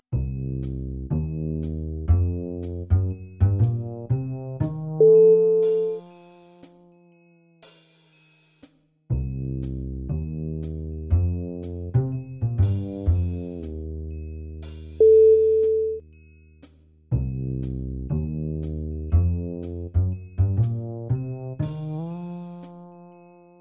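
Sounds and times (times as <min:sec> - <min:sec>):
mystery bass: 0:00.1 - 0:06.1, 0:09.1 - 0:16.0, 0:17.1 - 0:22.9.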